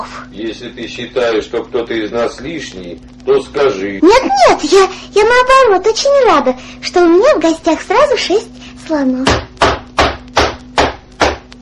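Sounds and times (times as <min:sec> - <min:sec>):
speech: 0:00.3 - 0:09.5
knocking on a door: 0:09.2 - 0:11.5.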